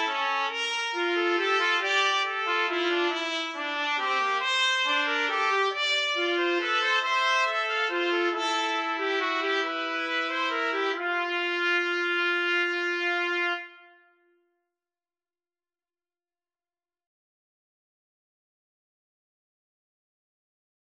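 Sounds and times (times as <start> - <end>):
trumpet trio: 0.0 - 14.2.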